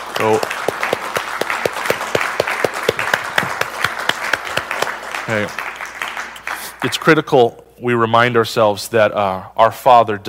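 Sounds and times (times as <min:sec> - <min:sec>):
audience applause: 0:00.0 - 0:07.1
speech: 0:00.2 - 0:00.6, 0:05.3 - 0:05.7, 0:06.8 - 0:10.2.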